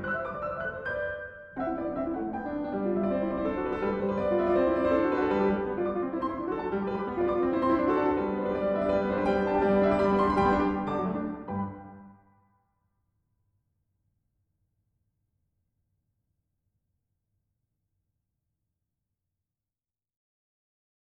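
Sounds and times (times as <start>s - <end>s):
piano sonata in G, vivace movement: 0.0s - 12.5s.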